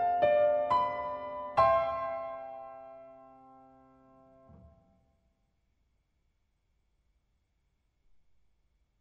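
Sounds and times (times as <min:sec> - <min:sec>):
piano: 0:00.0 - 0:05.2.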